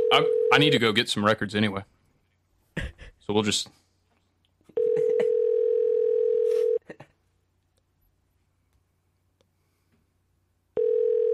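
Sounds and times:
telephone dial tone: 0.0 - 0.6, 4.8 - 6.8, 10.8 - 11.3
speech: 0.1 - 1.9, 3.3 - 3.8.

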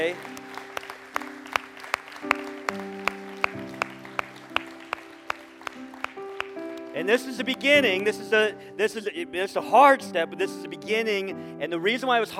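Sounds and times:
speech: 0.0 - 0.4, 7.0 - 12.3
audience clapping in a steady rhythm: 0.0 - 7.6
sustained organ-like chords: 0.0 - 11.8.

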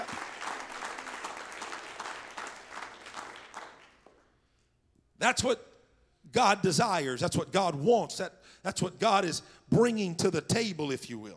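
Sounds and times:
audience clapping hands: 0.0 - 4.3
speech: 5.2 - 5.7, 6.3 - 11.3.

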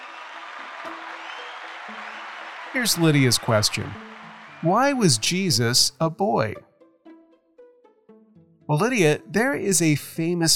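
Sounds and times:
round of applause: 0.0 - 5.7
speech: 2.7 - 6.7, 8.7 - 10.5.

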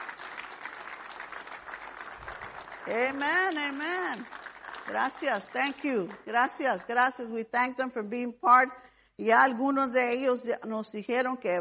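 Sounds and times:
crowd clapping: 0.0 - 6.6
speech: 2.8 - 11.6.

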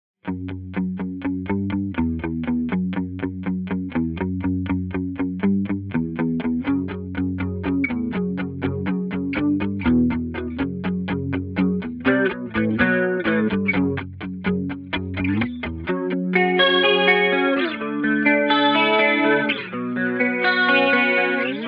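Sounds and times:
Fender Jazzmaster electric guitar: 0.2 - 21.6.

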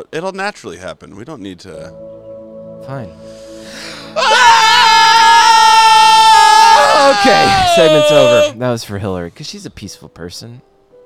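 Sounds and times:
speech: 0.0 - 2.1, 2.8 - 4.9, 7.1 - 10.7
people yelling loudly: 4.2 - 8.6.

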